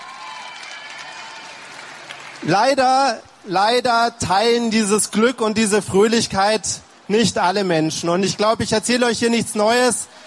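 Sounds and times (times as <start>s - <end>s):
festival crowd applauding loudly: 0.0s - 3.5s
speech: 2.4s - 10.2s.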